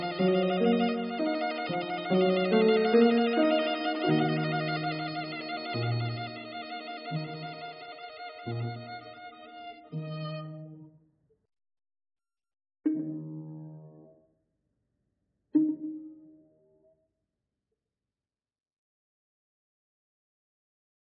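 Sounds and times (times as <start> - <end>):
violin: 0.0 - 10.9, 12.9 - 14.0, 15.6 - 16.4.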